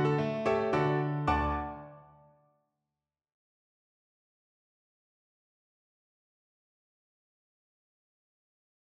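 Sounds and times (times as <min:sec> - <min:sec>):
piano piece: 0:00.0 - 0:02.4.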